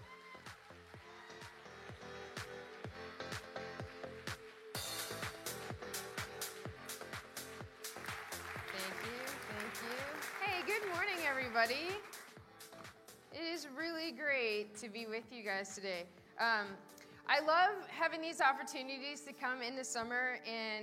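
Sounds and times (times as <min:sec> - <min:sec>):
church audience clapping and cheering: 0:00.0 - 0:13.0
upbeat band music: 0:01.4 - 0:13.3
speech: 0:11.6 - 0:12.1, 0:13.4 - 0:20.8.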